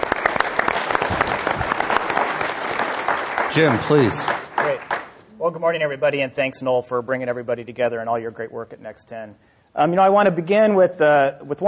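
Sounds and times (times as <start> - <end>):
audience applause: 0.0 - 5.2
speech: 3.6 - 4.4, 5.5 - 11.6.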